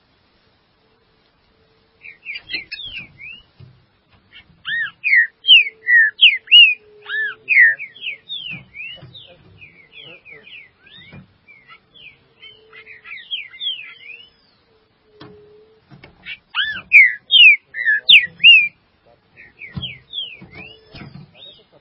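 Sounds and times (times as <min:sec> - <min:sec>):
green-winged saltator song: 0:02.0 - 0:03.5, 0:04.6 - 0:15.3, 0:16.6 - 0:18.8, 0:19.4 - 0:21.8.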